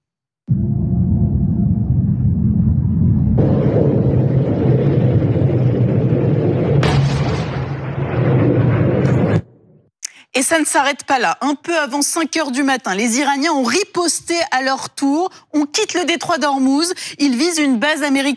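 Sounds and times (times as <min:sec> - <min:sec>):
several explosions rumbling across a zone: 0:00.5 - 0:09.9
speech: 0:10.5 - 0:18.3.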